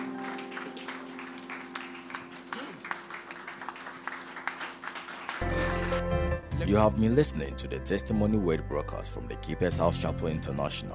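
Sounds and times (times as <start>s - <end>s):
audience clapping hands: 0.0s - 6.0s
speech: 6.0s - 10.9s.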